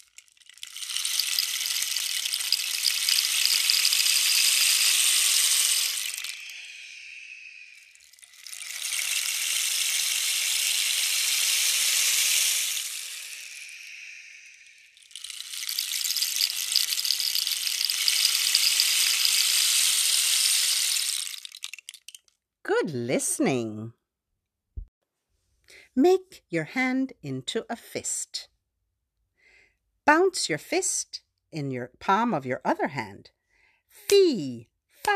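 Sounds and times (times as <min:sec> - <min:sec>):
rain stick being turned: 0:00.0 - 0:22.3
speech: 0:22.9 - 0:24.0, 0:26.0 - 0:28.5, 0:30.1 - 0:33.4, 0:34.0 - 0:35.1.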